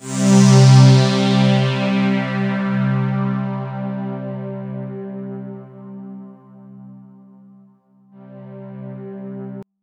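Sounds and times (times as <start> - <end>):
Roland JV 2080 poly saw synth playing C2: 0.0 - 7.3, 8.2 - 9.6.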